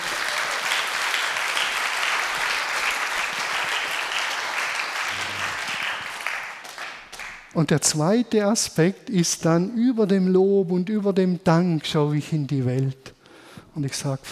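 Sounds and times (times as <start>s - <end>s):
audience applause: 0.0s - 7.4s
speech: 7.6s - 13.2s, 13.8s - 14.3s.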